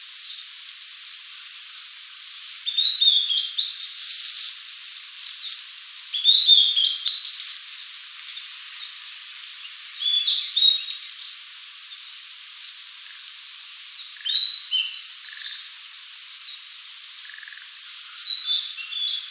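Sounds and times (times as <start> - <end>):
light hiss: 0.0 - 19.2
blue-and-white flycatcher whistled song: 2.6 - 4.0, 5.4 - 7.4, 9.8 - 11.4, 14.1 - 15.7, 18.1 - 19.2.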